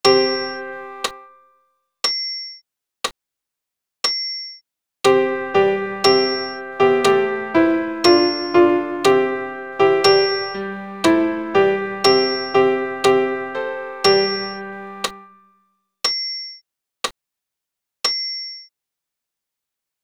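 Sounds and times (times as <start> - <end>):
piano accompaniment: 0.0 - 1.4, 5.1 - 15.4.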